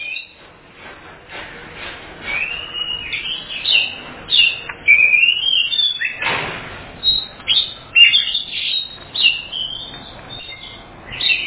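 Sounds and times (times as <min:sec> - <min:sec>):
Oriental magpie-robin whistled phrases: 0:00.0 - 0:00.4, 0:02.3 - 0:06.2, 0:07.0 - 0:11.4.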